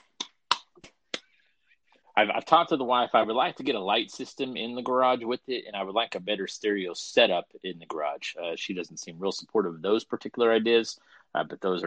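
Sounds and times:
hand clapping: 0:00.0 - 0:01.3
speech: 0:02.2 - 0:11.8.

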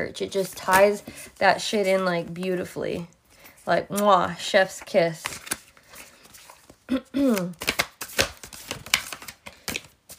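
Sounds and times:
speech: 0:00.0 - 0:05.5, 0:06.9 - 0:07.7
deck of cards shuffling: 0:00.2 - 0:02.1, 0:04.0 - 0:10.1.

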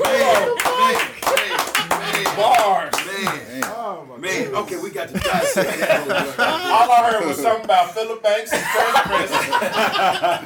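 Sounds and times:
laughter: 0:00.0 - 0:02.6, 0:04.9 - 0:10.4
audience clapping: 0:00.0 - 0:03.8
speech: 0:04.6 - 0:10.4.

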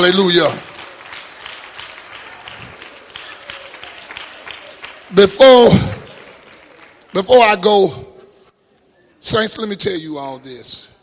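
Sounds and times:
speech: 0:00.0 - 0:00.7, 0:05.2 - 0:06.0, 0:07.2 - 0:08.1, 0:09.2 - 0:10.9
audience clapping: 0:00.0 - 0:08.0.

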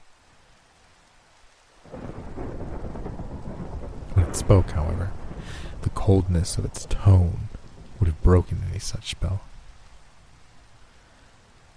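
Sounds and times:
steady rain: 0:00.0 - 0:11.7
rolling thunder: 0:01.9 - 0:09.8
speech: 0:04.4 - 0:05.2, 0:05.9 - 0:09.5.

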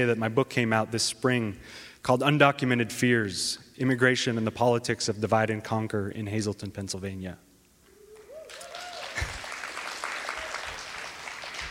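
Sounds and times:
speech: 0:00.0 - 0:07.5
scattered cheers: 0:08.1 - 0:10.9
audience applause: 0:08.5 - 0:11.6.

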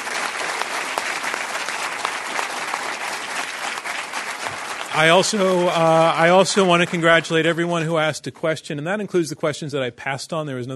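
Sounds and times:
round of applause: 0:00.0 - 0:07.8
speech: 0:05.0 - 0:10.7.

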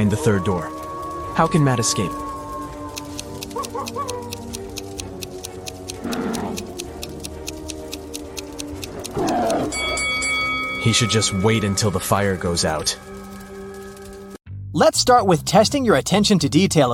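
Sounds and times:
hungry tigers roaring: 0:00.0 - 0:10.1
soft sustained musical drone: 0:00.0 - 0:14.4
steady ticking beat: 0:00.0 - 0:14.4
speech: 0:00.1 - 0:00.8, 0:01.4 - 0:02.2, 0:10.8 - 0:13.2, 0:14.8 - 0:16.9.

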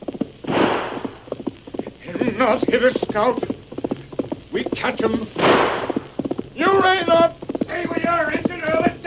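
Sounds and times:
horse galloping across the prairie: 0:00.0 - 0:09.0
loud whooshing rush of noise: 0:00.4 - 0:01.2
speech: 0:02.4 - 0:03.5, 0:04.5 - 0:05.9, 0:06.6 - 0:07.3.

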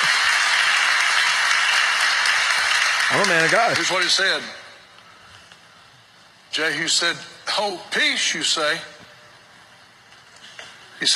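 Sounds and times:
crowd applause: 0:00.0 - 0:04.5
speech: 0:03.1 - 0:04.6, 0:06.6 - 0:08.9, 0:11.0 - 0:11.1.

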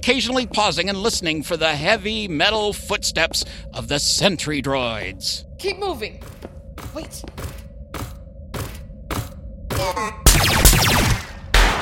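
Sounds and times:
speech: 0:00.0 - 0:07.5
steady low hum: 0:00.0 - 0:11.7
gunshots: 0:09.1 - 0:11.7
dense burst of crackling gunfire: 0:10.3 - 0:11.7.

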